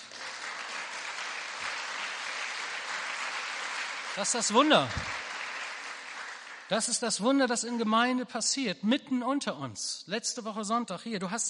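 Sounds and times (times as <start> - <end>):
crowd applauding: 0.0 - 6.9
speech: 4.2 - 5.2, 6.7 - 11.4.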